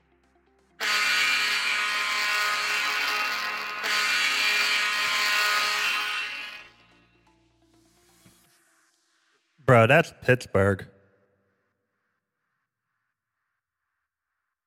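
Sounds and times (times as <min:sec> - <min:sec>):
hockey arena goal horn: 0:00.8 - 0:06.8
speech: 0:09.7 - 0:11.0.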